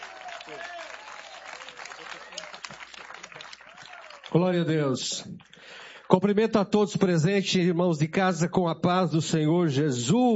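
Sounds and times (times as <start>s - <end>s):
audience clapping: 0.0s - 6.0s
speech: 0.5s - 1.0s, 4.3s - 10.3s.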